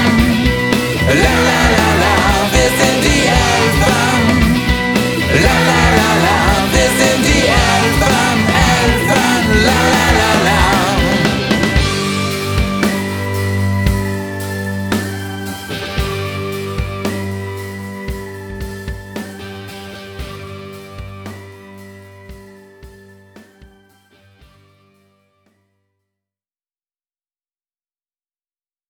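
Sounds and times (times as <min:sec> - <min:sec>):
singing: 0:00.0 - 0:17.3.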